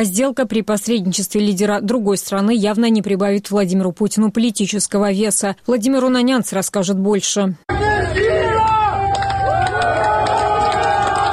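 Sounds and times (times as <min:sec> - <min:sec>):
speech: 0:00.0 - 0:08.8
crowd shouting: 0:07.7 - 0:11.3.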